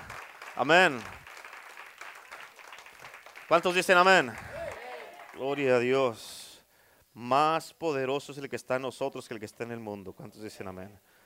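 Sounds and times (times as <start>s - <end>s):
audience applause: 0.0s - 5.7s
speech: 0.6s - 1.2s, 3.5s - 4.5s, 5.4s - 6.4s, 7.2s - 11.1s.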